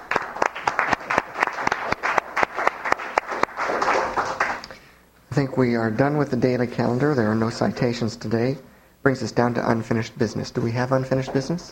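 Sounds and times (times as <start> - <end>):
applause in the Senate chamber in Juneau welcoming a new regent: 0.0 - 4.8
speech: 5.4 - 11.7.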